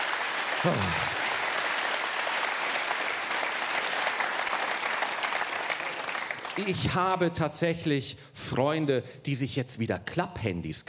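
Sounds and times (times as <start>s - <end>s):
audience clapping: 0.0s - 7.1s
speech: 0.6s - 1.2s, 6.6s - 10.8s.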